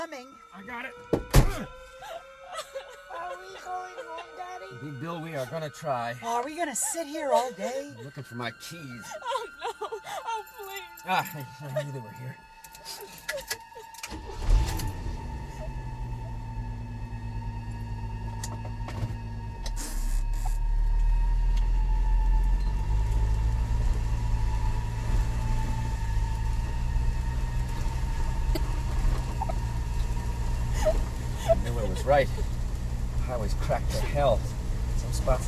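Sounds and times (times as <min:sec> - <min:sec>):
speech: 0:00.0 - 0:14.5, 0:32.1 - 0:32.4, 0:33.5 - 0:34.6, 0:35.2 - 0:35.4
laughter: 0:02.0 - 0:04.8, 0:09.0 - 0:12.2, 0:28.5 - 0:29.9, 0:30.7 - 0:32.4
four-wheel drive vehicle engine starting and driving: 0:13.4 - 0:35.4.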